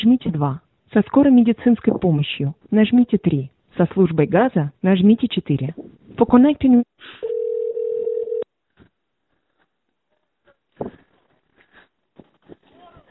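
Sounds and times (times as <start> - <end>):
speech: 0.0 - 7.4
telephone ringing tone while calling ambulance: 7.2 - 8.5.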